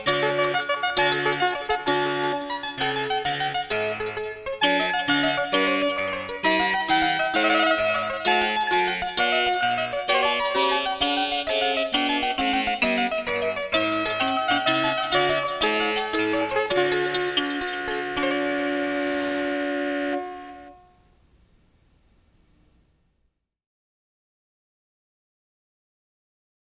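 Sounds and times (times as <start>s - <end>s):
baroque orchestral allegro: 0.0s - 20.7s.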